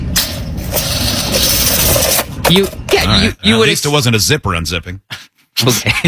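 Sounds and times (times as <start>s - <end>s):
tape measure rolling back up: 0.1s - 2.4s
speech: 2.5s - 6.0s.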